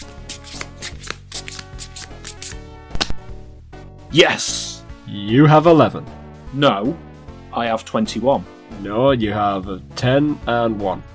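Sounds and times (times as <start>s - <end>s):
playing cards shuffled and dealt during a card game: 0.0s - 3.2s
steady music: 0.0s - 11.1s
speech: 4.1s - 11.1s.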